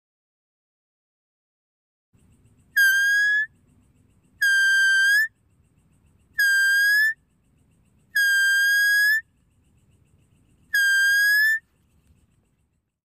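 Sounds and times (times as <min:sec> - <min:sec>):
deer calling with long steady whistles: 0:02.7 - 0:03.6, 0:04.4 - 0:05.4, 0:06.3 - 0:07.2, 0:08.1 - 0:09.3, 0:10.7 - 0:11.7.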